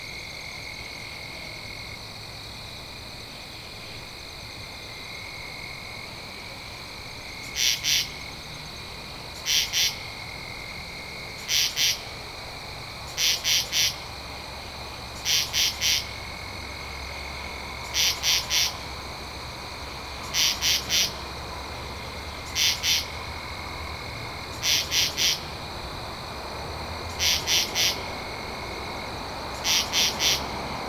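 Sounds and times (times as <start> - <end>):
high insect hum: 0.0 - 30.8
katydid calling: 15.2 - 16.2, 17.8 - 18.9, 20.2 - 21.2, 22.3 - 23.2, 24.5 - 25.5, 27.1 - 28.0, 29.6 - 30.5.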